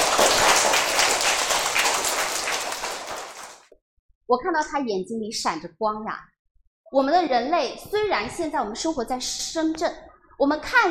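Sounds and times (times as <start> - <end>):
audience applause: 0.0 - 3.7
speech: 4.3 - 6.3, 6.9 - 10.8.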